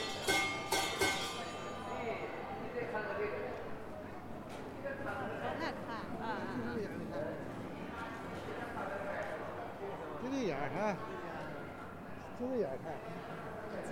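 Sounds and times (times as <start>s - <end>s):
crowd murmur on Zhongjie in Shenyang: 0.0s - 13.9s.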